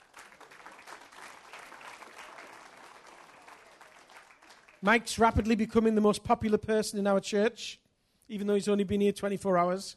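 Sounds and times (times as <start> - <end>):
audience applause: 0.0 - 4.8
speech: 4.8 - 9.9.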